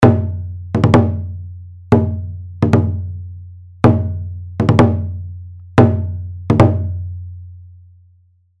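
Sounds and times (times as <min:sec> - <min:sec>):
huapenggu drum playing: 0:00.0 - 0:01.3, 0:01.9 - 0:03.1, 0:03.8 - 0:05.1, 0:05.8 - 0:07.0.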